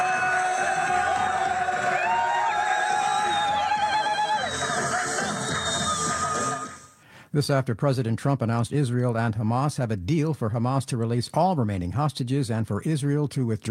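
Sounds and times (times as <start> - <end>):
crowd cheering in celebration: 0.0 - 7.0
speech: 7.3 - 13.7.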